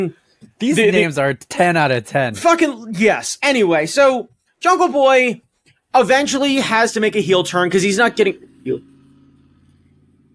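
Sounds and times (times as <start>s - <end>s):
speech: 0.0s - 8.9s
Harley motorcycle engine rumbling outside: 7.2s - 10.3s.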